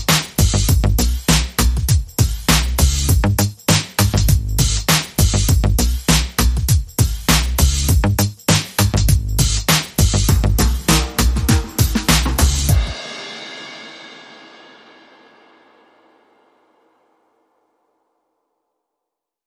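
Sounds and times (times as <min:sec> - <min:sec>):
drums and bass music: 0:00.0 - 0:14.9.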